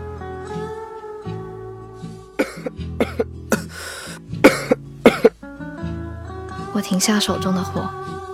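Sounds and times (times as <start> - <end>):
man coughing: 2.4 - 5.4
speech: 6.8 - 8.0.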